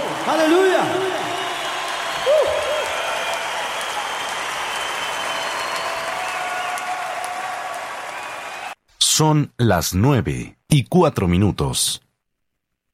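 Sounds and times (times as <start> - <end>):
large crowd applauding: 0.0 - 8.8
speech: 0.2 - 1.2, 9.2 - 12.0.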